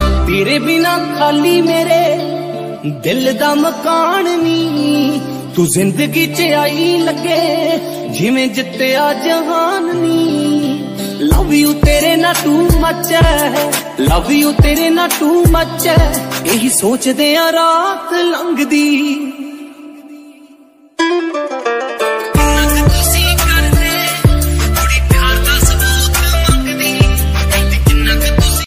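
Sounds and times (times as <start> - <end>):
Punjabi love song ringtone: 0.0 - 20.4, 21.0 - 28.6.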